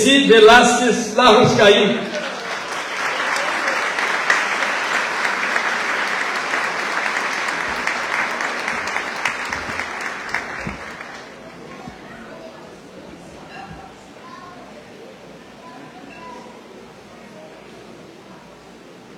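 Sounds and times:
speech: 0.0 - 2.2
audience applause: 2.0 - 11.7.

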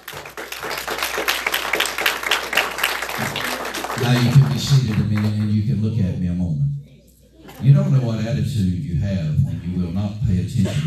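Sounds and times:
audience hand clapping: 0.0 - 5.6
speech: 4.0 - 6.7, 7.6 - 10.8.

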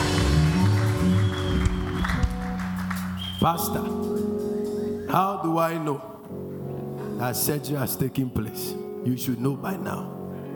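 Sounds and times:
audience shouting and clapping: 0.0 - 3.2
speech: 3.4 - 4.1, 5.1 - 6.1, 7.2 - 10.2.

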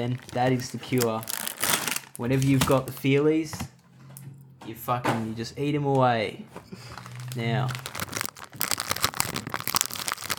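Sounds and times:
speech: 0.0 - 1.4, 2.2 - 3.7, 4.7 - 7.9
snack packaging crinkling: 0.0 - 3.0, 6.9 - 10.3.

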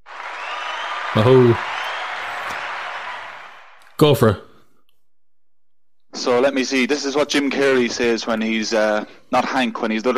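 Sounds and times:
applause sound effect: 0.0 - 4.0
speech: 1.2 - 1.7, 4.0 - 4.4, 6.2 - 10.1.

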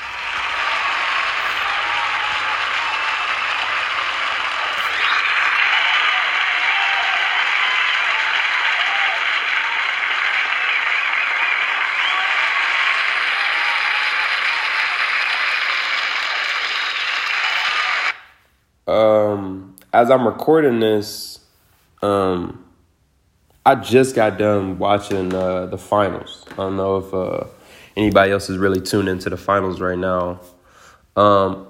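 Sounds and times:
applause: 0.0 - 18.2
speech: 20.0 - 21.3, 22.0 - 22.6, 23.6 - 30.6, 31.2 - 31.6.

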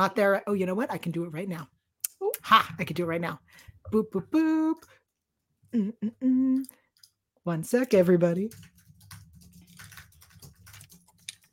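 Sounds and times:
speech: 0.0 - 5.0, 5.7 - 6.8, 7.4 - 8.7
typing on a computer keyboard: 8.4 - 11.5.

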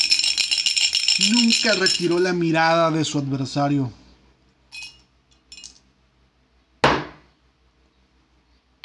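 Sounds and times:
dice shaken in a glass: 0.0 - 2.5
speech: 1.2 - 4.0.

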